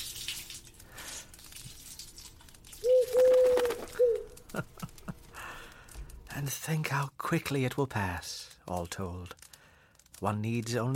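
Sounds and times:
pigeon cooing: 0:02.8 - 0:04.4
laughter: 0:04.4 - 0:05.4
speech: 0:04.6 - 0:04.8, 0:06.4 - 0:09.4, 0:10.2 - 0:10.9.

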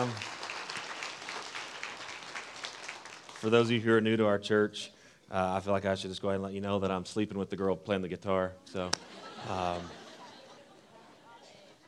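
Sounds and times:
speech: 0:00.0 - 0:00.3, 0:03.4 - 0:10.0
audience hand clap for worship team: 0:00.0 - 0:03.8
laughter: 0:08.7 - 0:11.8.

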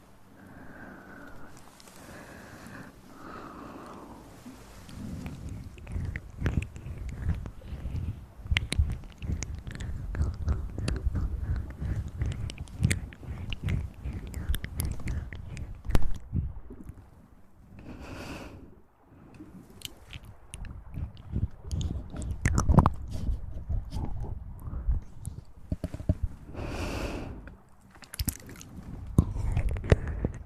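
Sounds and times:
breathing: 0:00.3 - 0:16.5, 0:17.8 - 0:19.5, 0:25.9 - 0:27.6, 0:28.8 - 0:30.4
mouth sounds: 0:04.8 - 0:17.0, 0:19.8 - 0:27.5, 0:28.1 - 0:30.4.

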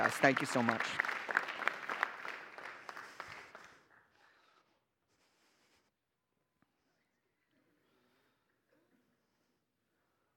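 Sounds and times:
crowd applause: 0:00.0 - 0:04.0
speech: 0:00.1 - 0:01.1.

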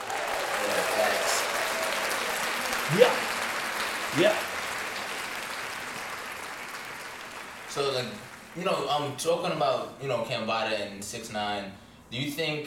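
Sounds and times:
hands clapping: 0:00.0 - 0:09.1
speech: 0:02.9 - 0:03.2, 0:04.2 - 0:04.5, 0:08.0 - 0:12.6.

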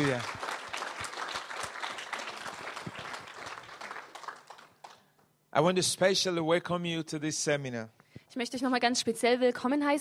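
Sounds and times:
speech: 0:00.0 - 0:00.4, 0:05.6 - 0:09.9
seminar audience applause giving praise to Jesus: 0:00.0 - 0:05.1.

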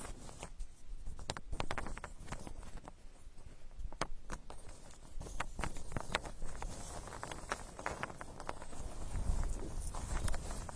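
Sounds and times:
straw dug and rustled in ear digging: 0:00.0 - 0:10.7.

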